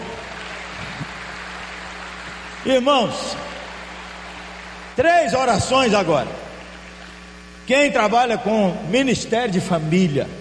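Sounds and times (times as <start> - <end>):
audience applause: 0.0 - 7.2
speech: 2.6 - 3.4, 5.0 - 6.5, 7.7 - 10.3.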